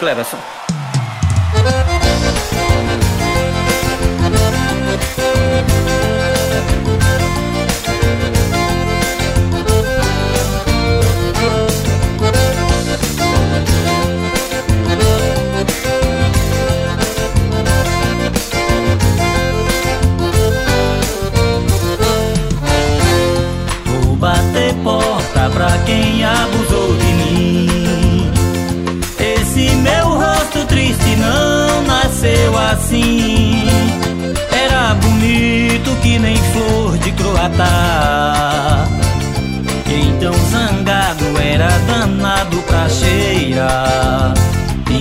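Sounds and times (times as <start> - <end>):
drums: 0.2 - 44.9.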